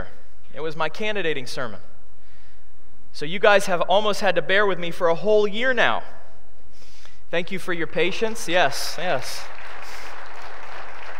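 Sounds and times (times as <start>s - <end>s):
speech: 0.6s - 1.9s, 3.1s - 6.2s, 7.3s - 9.6s
audience applause: 9.0s - 11.1s.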